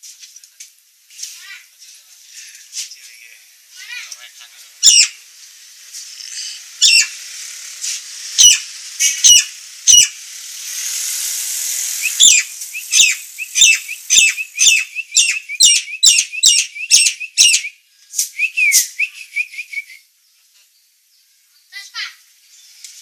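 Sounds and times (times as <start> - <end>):
Nias hill myna calling: 4.8 - 5.2, 6.2 - 7.3, 8.3 - 10.2, 12.0 - 17.7.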